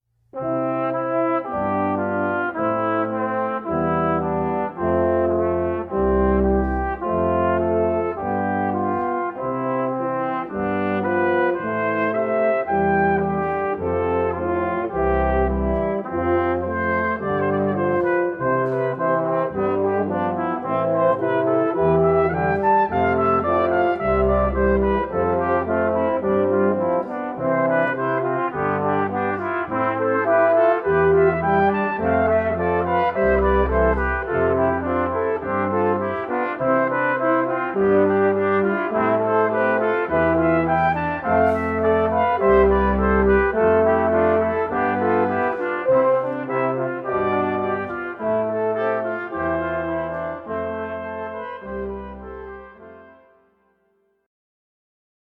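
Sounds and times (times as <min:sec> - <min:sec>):
brass quintet playing a canon: 0:00.4 - 0:53.6.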